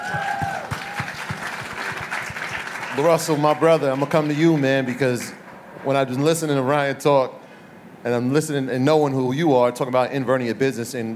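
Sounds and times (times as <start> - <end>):
audience applause: 0.0 - 5.5
speech: 3.0 - 7.4, 8.0 - 11.1.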